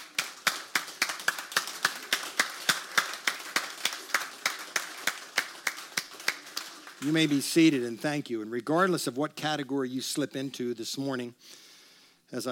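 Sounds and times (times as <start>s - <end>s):
audience applause: 0.0s - 7.6s
speech: 7.0s - 11.6s, 12.3s - 12.5s.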